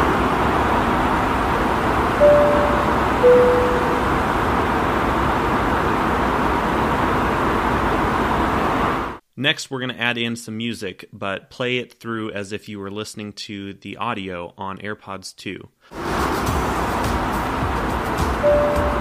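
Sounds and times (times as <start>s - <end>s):
airplane cabin ambient noise: 0.0s - 9.1s, 16.0s - 18.9s
speech: 9.4s - 16.1s.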